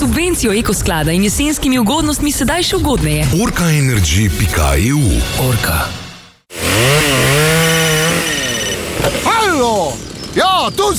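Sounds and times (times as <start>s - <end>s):
speech: 0.2s - 6.0s, 9.6s - 10.9s
chainsaw cutting wood: 6.5s - 10.4s.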